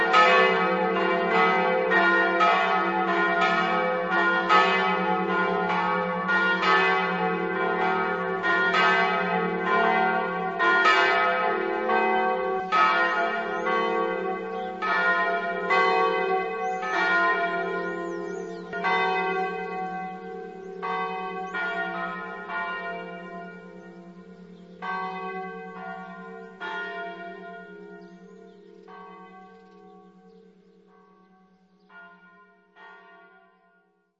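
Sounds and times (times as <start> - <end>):
bells ringing: 0.0 - 33.3.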